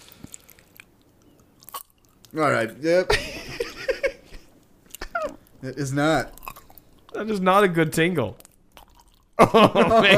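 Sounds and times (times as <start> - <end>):
biting and chewing food: 0.0 - 2.4, 6.2 - 7.2, 8.4 - 9.4
speech: 2.3 - 3.3, 5.6 - 6.4, 7.2 - 8.4, 9.4 - 10.1
laughter: 3.1 - 4.4, 9.4 - 10.1.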